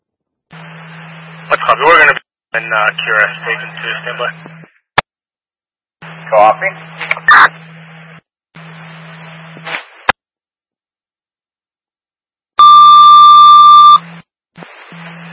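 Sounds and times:
radio paging test tones: 0.5 - 4.8, 6.0 - 10.0, 12.6 - 15.3
speech: 1.7 - 4.5, 6.3 - 7.6.

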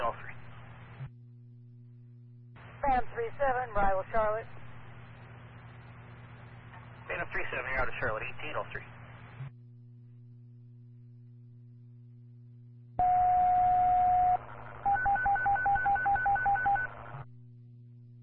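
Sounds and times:
Prairie Fire and Ambulance radio tone test: 2.6 - 9.5, 13.0 - 17.2
speech: 2.8 - 4.6, 7.3 - 9.0.

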